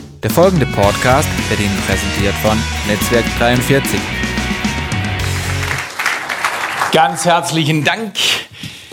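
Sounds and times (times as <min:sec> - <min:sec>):
speech: 0:00.2 - 0:04.6, 0:06.9 - 0:08.7
audience clapping: 0:01.2 - 0:07.7.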